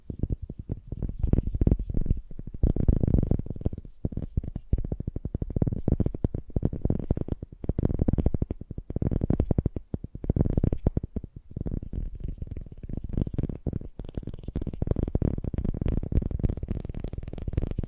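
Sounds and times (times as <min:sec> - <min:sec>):
fast gentle tapping: 0:00.0 - 0:17.8.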